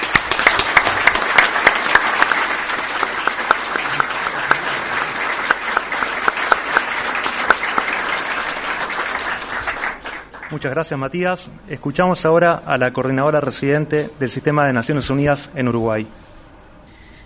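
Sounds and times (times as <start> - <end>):
loud audience applause: 0.0 - 10.7
speech: 10.5 - 16.3.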